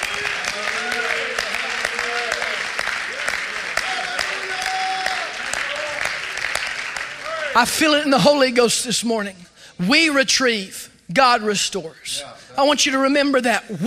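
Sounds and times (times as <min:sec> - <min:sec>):
people clapping hands: 0:00.0 - 0:08.0
speech: 0:07.6 - 0:13.8.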